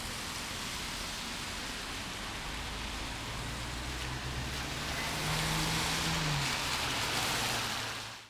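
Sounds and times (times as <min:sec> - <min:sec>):
rain in a town: 0:00.0 - 0:08.2.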